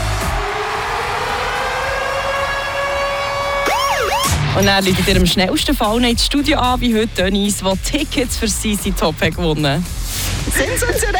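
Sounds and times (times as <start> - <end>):
siren-like ticket alarm jingle: 1.0 - 5.6
speech: 4.6 - 11.1
laughter: 10.4 - 11.1.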